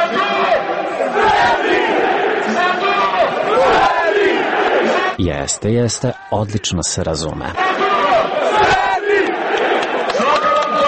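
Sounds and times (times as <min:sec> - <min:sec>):
large stadium crowd chanting a battle cry: 0:00.0 - 0:05.2, 0:07.6 - 0:10.8
speech: 0:05.2 - 0:08.0.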